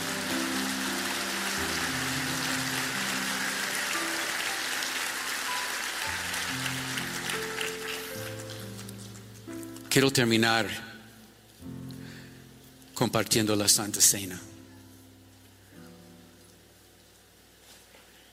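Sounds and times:
audience applause: 0.0s - 8.8s
speech: 10.0s - 10.9s, 13.0s - 14.5s.

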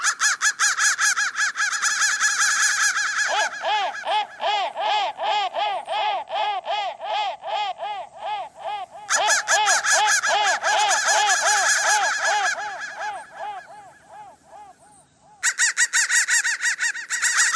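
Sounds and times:
crow chorus cawing: 0.0s - 17.5s.

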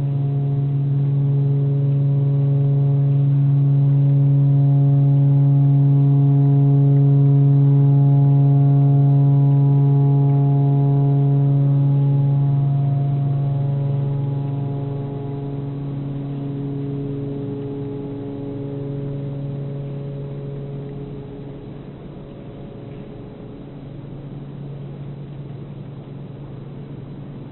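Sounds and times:
pentatonic tornado siren: 0.0s - 24.9s.

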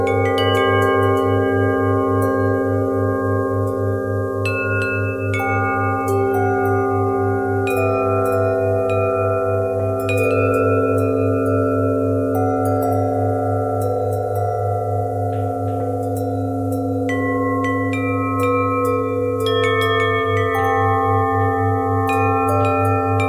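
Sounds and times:
bell harmonic twist: 0.0s - 23.2s.

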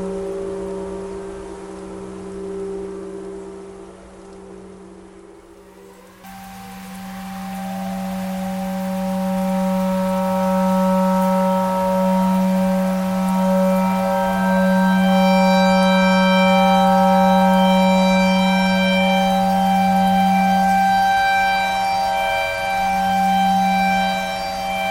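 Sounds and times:
clarinet imitating a tornado siren: 6.5s - 24.8s.

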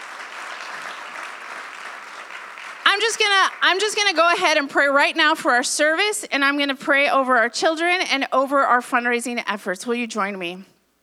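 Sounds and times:
audience applause: 0.0s - 4.3s
speech: 3.0s - 10.7s.

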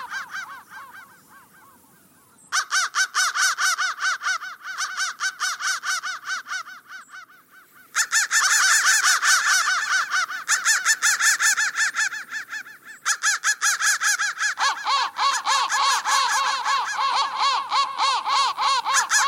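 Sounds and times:
crow harsh cawing: 0.0s - 19.2s.

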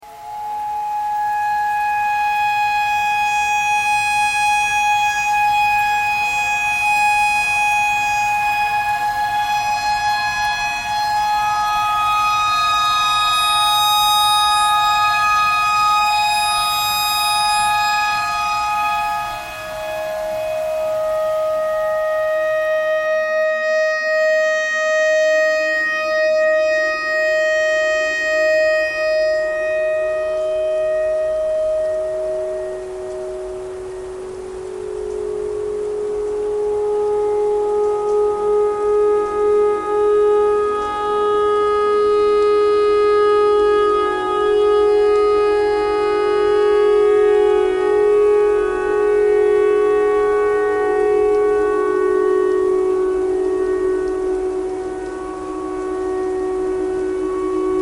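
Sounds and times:
clarinet notes: 0.0s - 57.8s
tornado siren: 0.0s - 57.8s.

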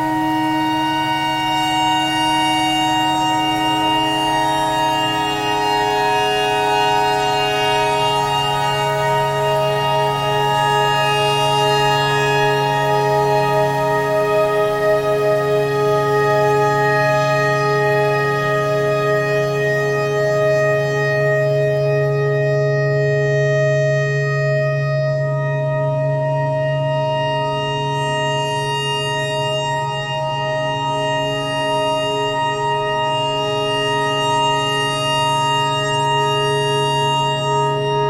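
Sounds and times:
tornado siren: 0.0s - 38.0s.

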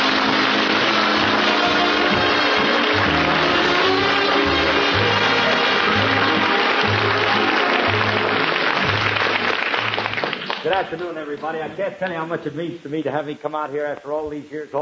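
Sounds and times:
audience applause: 0.0s - 11.7s
speech: 10.8s - 14.7s.

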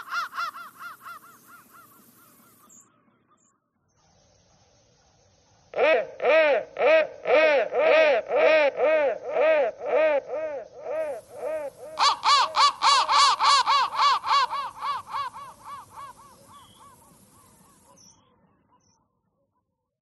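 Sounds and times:
crow calling: 0.0s - 3.5s, 5.8s - 18.3s.

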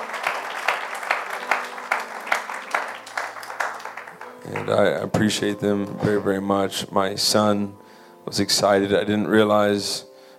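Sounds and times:
audience applause: 0.0s - 5.2s
speech: 4.5s - 10.1s.

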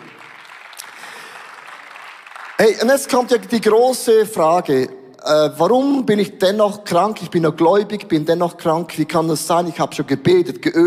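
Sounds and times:
audience clapping: 0.0s - 3.8s
speech: 2.6s - 10.8s.

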